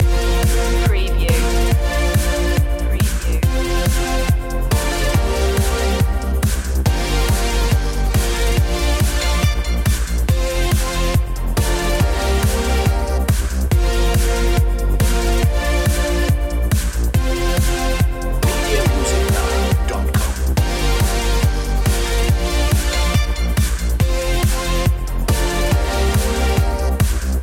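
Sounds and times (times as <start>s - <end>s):
oriental music loop: 0.0s - 27.4s.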